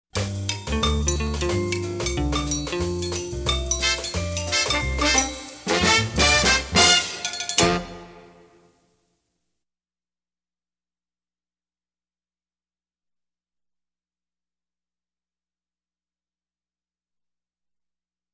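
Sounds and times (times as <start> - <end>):
cha cha music: 0.2 - 8.7.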